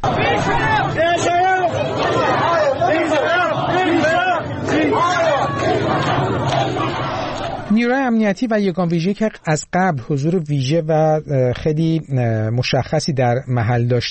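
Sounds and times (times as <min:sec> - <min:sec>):
crowd of protesters chanting slogans in unison in front of a governor's office: 0:00.0 - 0:07.7
speech: 0:07.8 - 0:14.0.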